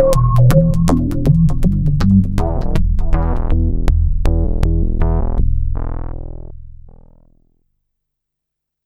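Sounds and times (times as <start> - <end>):
bass intro: 0.0 - 7.5.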